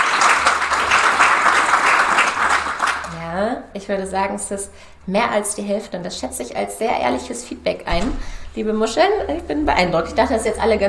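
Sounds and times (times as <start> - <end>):
crowd clapping: 0.0 - 3.2
speech: 3.7 - 10.8.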